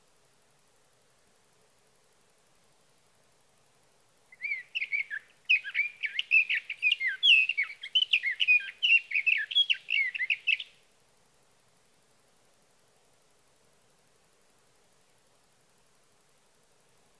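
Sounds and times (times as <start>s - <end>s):
sage thrasher: 4.4s - 10.8s.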